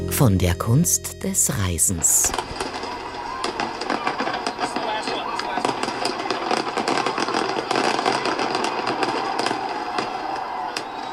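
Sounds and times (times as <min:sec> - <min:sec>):
speech: 0:00.2 - 0:02.7
fireworks exploding: 0:02.3 - 0:11.1.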